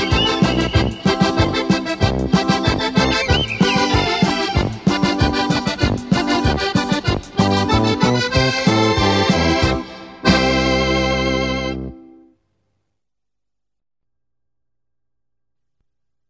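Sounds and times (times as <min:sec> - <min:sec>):
electronica music: 0:00.0 - 0:12.0.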